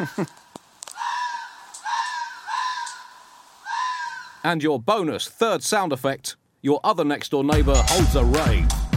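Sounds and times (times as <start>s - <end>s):
speech: 0.0s - 0.4s, 4.4s - 8.8s
two foxes screaming while mating: 0.9s - 4.5s.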